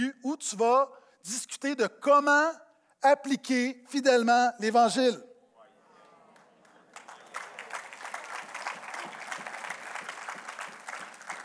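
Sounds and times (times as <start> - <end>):
speech: 0.0 - 5.3
audience applauding: 6.3 - 11.4.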